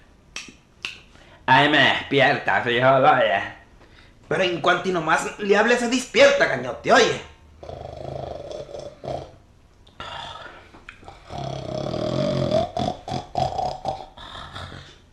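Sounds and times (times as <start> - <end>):
speech: 1.5 - 3.6, 4.3 - 7.8
man snoring: 7.6 - 9.4, 10.0 - 15.0.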